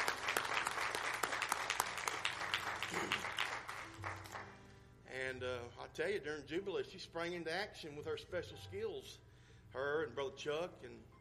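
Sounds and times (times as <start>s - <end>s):
audience applause: 0.0s - 4.6s
speech: 5.4s - 11.1s.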